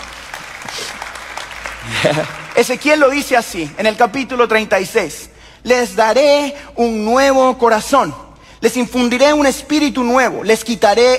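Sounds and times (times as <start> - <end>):
audience applause: 0.0 - 3.8
laughter: 1.6 - 2.7
speech: 1.8 - 11.1.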